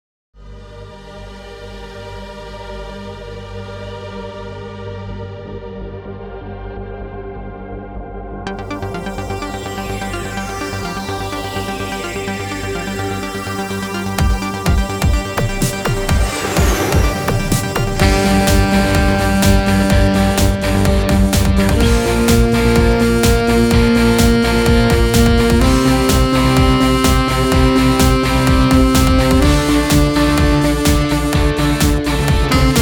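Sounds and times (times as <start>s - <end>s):
saxophone: 8.5s - 32.8s.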